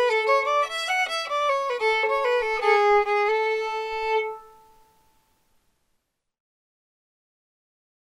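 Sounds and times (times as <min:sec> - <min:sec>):
fiddle: 0:00.0 - 0:05.2.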